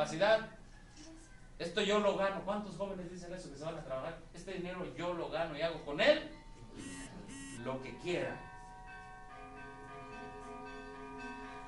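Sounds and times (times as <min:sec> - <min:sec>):
speech: 0:00.0 - 0:00.6, 0:01.6 - 0:08.5
church bells ringing: 0:07.6 - 0:11.6.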